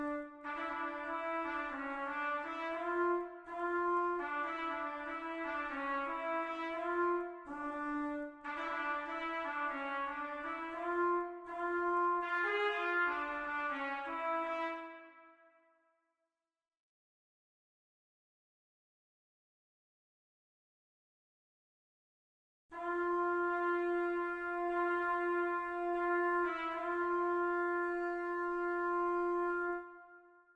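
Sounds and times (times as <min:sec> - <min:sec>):
trumpet: 0:00.0 - 0:15.7, 0:22.7 - 0:30.5.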